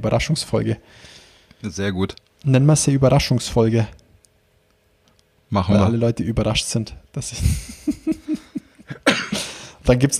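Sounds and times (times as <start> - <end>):
speech: 0.0 - 4.0, 5.5 - 8.2, 9.9 - 10.1
laughter: 7.4 - 9.5
person sneezing: 8.9 - 9.8.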